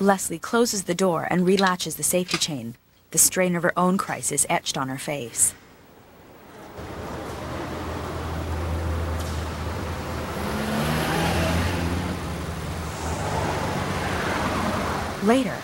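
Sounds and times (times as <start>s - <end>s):
speech: 0.0s - 5.6s, 15.2s - 15.6s
Volkswagen Beetle car driving: 6.2s - 15.6s.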